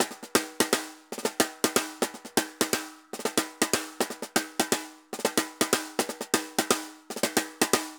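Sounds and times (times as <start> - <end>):
bomba drum rhythm at 120 bpm: 0.0 - 7.9.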